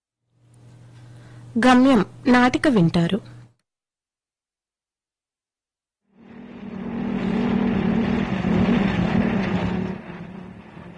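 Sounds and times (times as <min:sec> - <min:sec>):
speech: 0:01.6 - 0:03.3
car arriving, sound effect in a radio play: 0:06.1 - 0:10.9.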